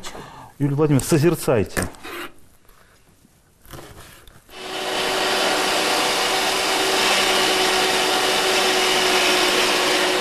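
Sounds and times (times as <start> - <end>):
speech: 0.6 - 2.3
electric meat grinder mincing meat: 4.5 - 10.2.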